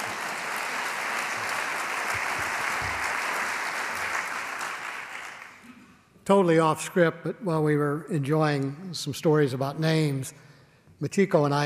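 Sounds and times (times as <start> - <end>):
audience applause: 0.0 - 5.6
speech: 6.3 - 11.6.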